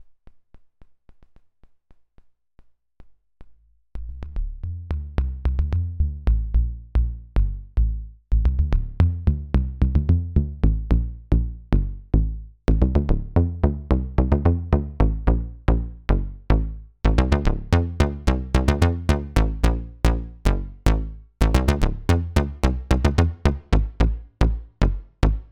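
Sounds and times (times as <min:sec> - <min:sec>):
bass: 0:03.6 - 0:25.5.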